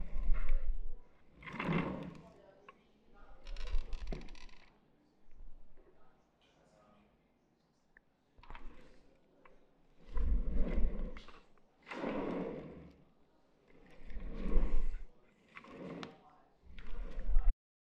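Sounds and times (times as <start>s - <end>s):
chair moving: 0.0s - 2.2s, 3.4s - 4.7s, 10.1s - 13.0s, 13.7s - 17.5s.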